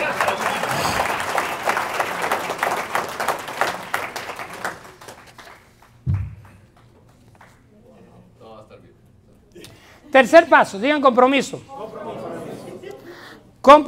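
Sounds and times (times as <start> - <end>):
audience applause: 0.0 - 6.8
single low thump: 6.1 - 6.5
speech: 10.2 - 11.7, 13.6 - 13.8.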